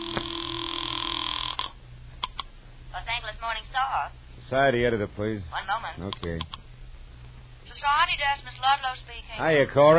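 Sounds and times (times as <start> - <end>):
telephone tone as a phone in a house is used to place a call: 0.0 - 1.8
speech: 3.4 - 6.6, 7.8 - 9.9.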